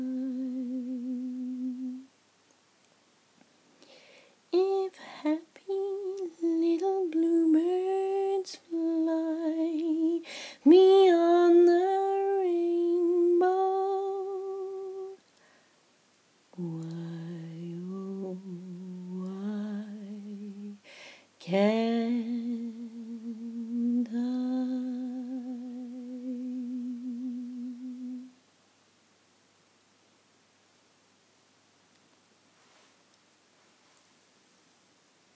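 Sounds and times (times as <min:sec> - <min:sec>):
woman singing a lullaby: 0:00.0 - 0:02.2, 0:03.8 - 0:15.4, 0:16.5 - 0:28.4.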